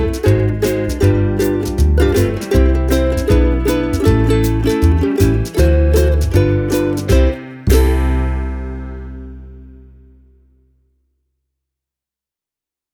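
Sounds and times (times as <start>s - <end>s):
Kala KA 15S ukulele: 0.0s - 10.2s.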